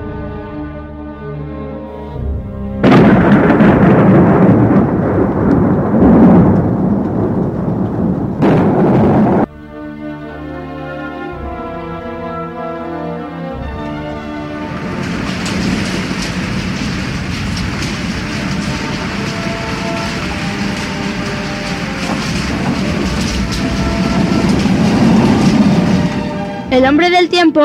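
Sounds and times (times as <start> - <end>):
rain on a stormy night: 2.3 - 9.5, 10.2 - 27.2
speech: 26.8 - 27.6.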